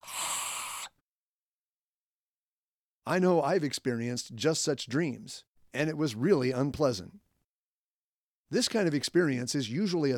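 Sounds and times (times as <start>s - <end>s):
voice imitating a strangled attempt to scream: 0.0s - 1.0s
speech: 3.1s - 7.2s, 8.5s - 10.1s.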